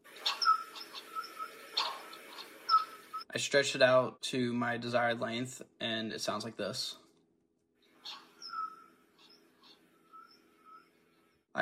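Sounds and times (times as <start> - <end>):
faint bird chirps from a sample for a ghostly soundscape: 0.1 - 3.3, 8.0 - 11.5
speech: 3.4 - 7.0.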